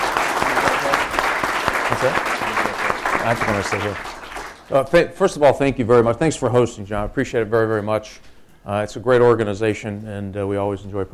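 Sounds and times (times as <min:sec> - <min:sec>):
audience applause: 0:00.0 - 0:04.7
speech: 0:02.0 - 0:02.3, 0:03.2 - 0:11.1.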